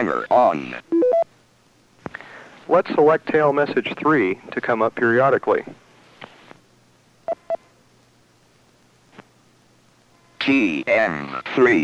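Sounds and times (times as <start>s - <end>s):
speech: 0.0s - 0.9s, 2.7s - 5.8s, 10.4s - 11.8s
DTMF tones of number dialed through patch: 1.0s - 1.2s.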